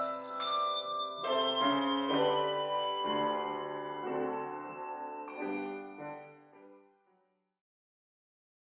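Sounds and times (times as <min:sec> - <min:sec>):
handbells playing a hymn medley at a summer music service in a Baptist church: 0:00.0 - 0:06.5
piano accompanying handbells in a Baptist church: 0:00.0 - 0:07.0.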